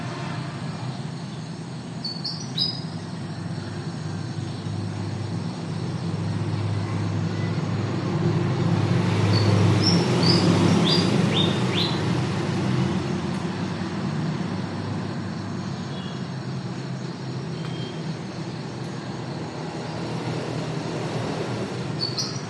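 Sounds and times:
distant morning traffic in a town in Ben Tre, Mekong Delta, Vietnam: 0.0s - 22.4s
birds in a town in Ben Tre, Mekong Delta, Vietnam: 0.8s - 5.9s, 9.1s - 12.8s, 15.6s - 19.0s, 21.6s - 22.4s.

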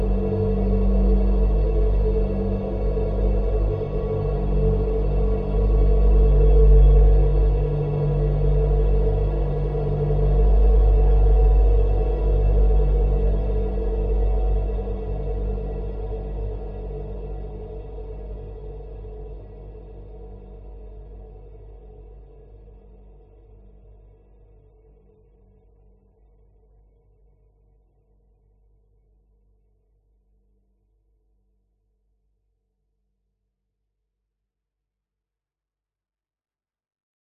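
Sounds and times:
dark eerie tense airy horror drone: 0.0s - 23.6s.

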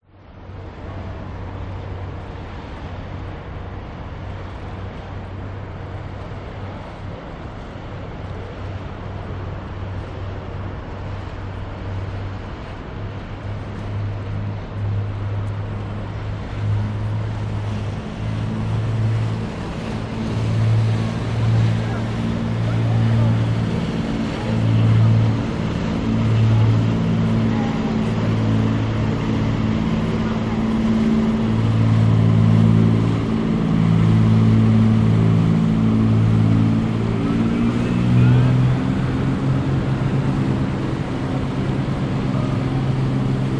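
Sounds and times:
motor boat passing at Sydney Harbour city quay: 0.0s - 43.5s
water lapping in Sydney Harbour: 0.3s - 43.5s
distant voices at Sydney Harbour city quay: 0.5s - 43.5s.

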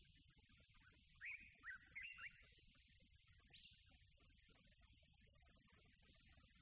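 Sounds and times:
tropical birds calling with warbled and whistled phrases: 1.0s - 3.9s.

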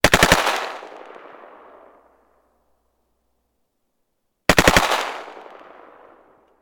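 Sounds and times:
AK-47 gunshots: 0.0s - 1.8s, 4.5s - 6.2s.

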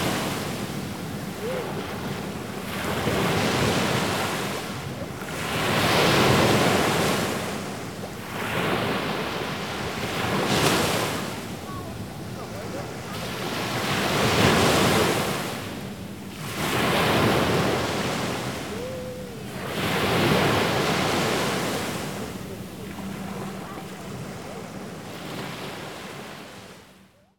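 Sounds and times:
sea waves: 0.0s - 27.0s
child: 11.6s - 13.2s, 23.3s - 24.6s.

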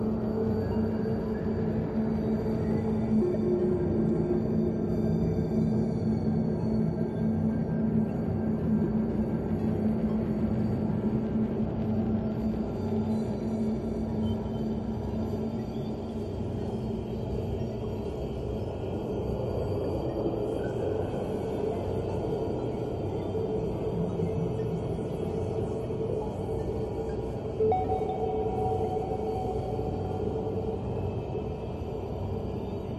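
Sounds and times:
dark eerie airy alien science fiction soundscape: 0.0s - 32.9s.

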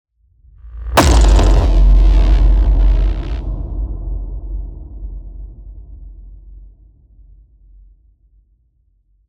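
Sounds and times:
cinematic hit: 1.0s - 5.8s.

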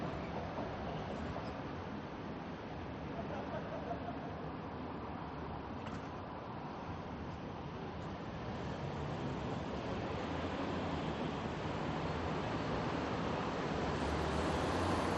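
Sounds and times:
daytime medium traffic heard from a balcony: 0.0s - 15.1s
tram passing by: 8.4s - 15.1s.

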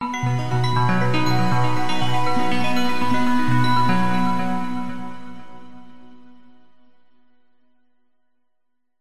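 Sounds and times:
multimedia logo warm bell-like synth arpeggio: 0.0s - 5.9s.

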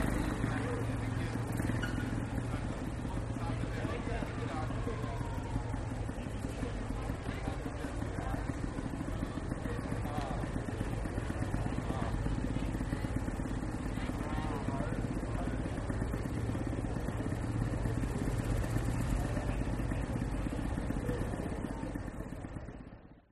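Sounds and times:
old-fashioned motorbikes passing by in Germany: 0.0s - 22.9s
voices in Germany: 0.0s - 23.3s.

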